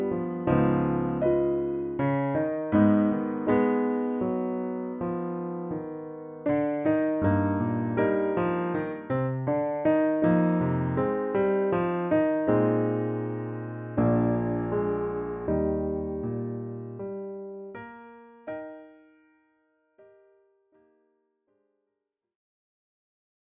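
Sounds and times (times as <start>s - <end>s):
piano accompaniment in E flat: 0.0s - 21.1s.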